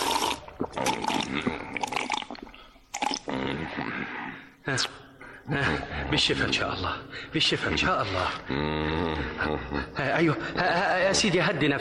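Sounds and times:
water poured and drunk to swallow a pill: 0.0 - 3.3
squishy swallowing gulps: 0.0 - 6.0
speech: 0.6 - 2.0, 3.8 - 11.7.

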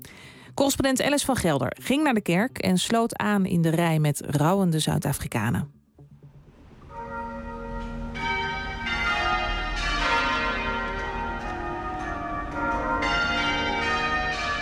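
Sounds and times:
speech: 0.0 - 5.8
cathedral church bells ringing: 6.8 - 14.6.

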